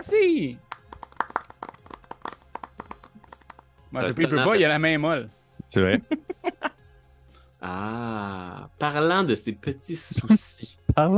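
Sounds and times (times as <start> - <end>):
speech: 0.0 - 0.7, 3.9 - 6.6, 7.6 - 11.1
applause, hand clapping: 0.6 - 3.6
laughter: 5.8 - 6.8.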